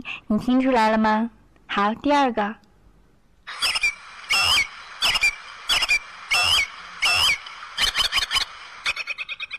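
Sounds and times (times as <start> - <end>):
speech: 0.0 - 2.6
robin singing: 3.5 - 9.5.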